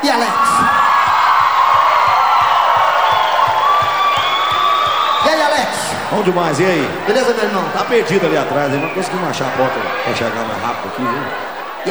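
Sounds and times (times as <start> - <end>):
speech: 0.0 - 0.4, 6.2 - 11.9
whoops and shouts: 0.0 - 6.2
large crowd clapping and cheering: 0.0 - 11.9
laughter: 0.0 - 11.9.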